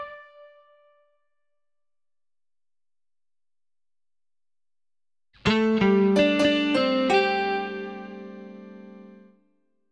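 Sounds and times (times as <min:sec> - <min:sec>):
musical fills: 0:05.5 - 0:09.3.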